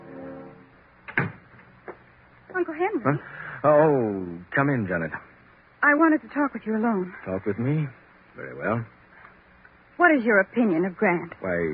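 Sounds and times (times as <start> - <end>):
door closing: 0.0 - 2.0
speech: 2.6 - 9.0, 10.0 - 11.7.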